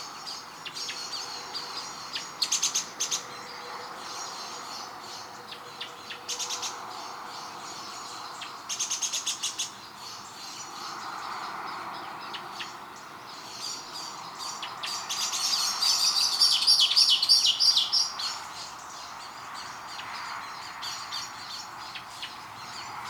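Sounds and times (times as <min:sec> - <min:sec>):
high twittering birds: 0:00.0 - 0:23.0
Eurasian blackbird chinking: 0:14.6 - 0:18.4.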